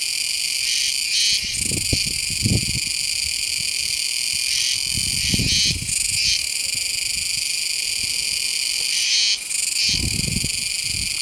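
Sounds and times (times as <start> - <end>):
loud cicadas: 0.0 - 11.2.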